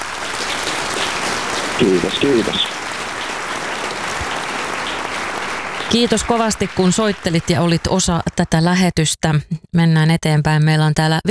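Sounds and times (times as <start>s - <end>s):
applause: 0.0s - 8.9s
speech: 1.8s - 2.8s, 5.9s - 11.2s.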